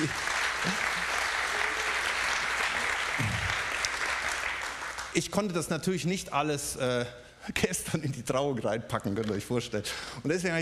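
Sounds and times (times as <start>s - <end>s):
speech: 0.0s - 0.9s, 5.2s - 10.5s
laughter: 0.0s - 2.0s
audience applause: 0.0s - 5.2s.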